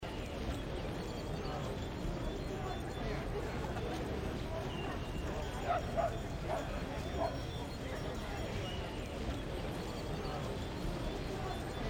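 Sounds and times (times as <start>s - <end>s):
daytime city ambience: 0.0s - 11.8s.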